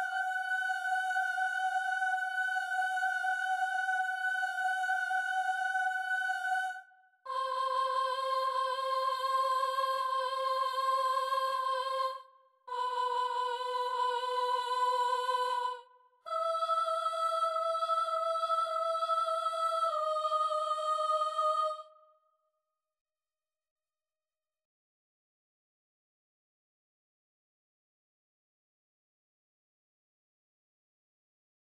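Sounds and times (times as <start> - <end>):
soprano singing: 0.0 - 21.9.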